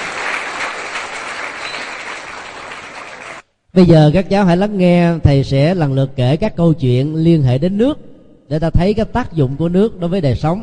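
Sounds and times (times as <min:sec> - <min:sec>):
children applauding: 0:00.0 - 0:03.4
speech: 0:03.8 - 0:10.6.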